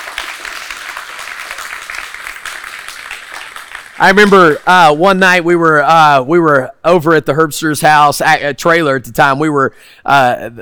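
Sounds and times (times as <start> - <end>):
audience applause: 0.0 - 4.4
speech: 4.0 - 10.6.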